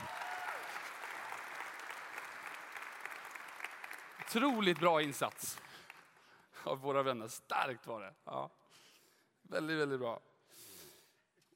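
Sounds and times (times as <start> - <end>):
audience applause: 0.0 - 6.3
speech: 4.3 - 5.7, 6.6 - 8.8, 9.5 - 10.7.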